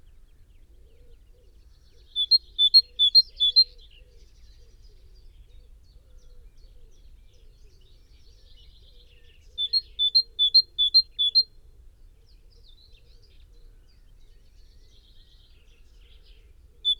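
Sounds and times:
great tit Parus major song of ringing two-note phrases: 2.1 - 3.7, 9.6 - 11.4.

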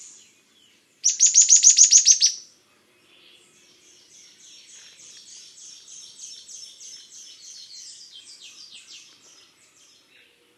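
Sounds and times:
bird trilling: 1.0 - 2.4.

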